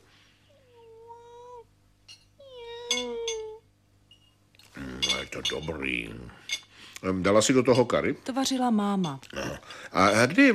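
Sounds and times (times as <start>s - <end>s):
cat meowing: 2.4s - 3.6s
speech: 5.3s - 10.5s.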